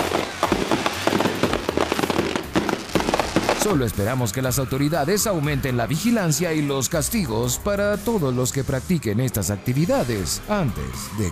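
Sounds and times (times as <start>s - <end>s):
fireworks and firecrackers exploding: 0.0s - 5.4s
speech: 3.6s - 11.3s.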